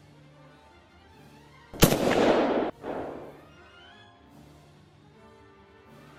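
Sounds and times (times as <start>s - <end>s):
projectile weapons firing in combat: 1.8s - 3.5s.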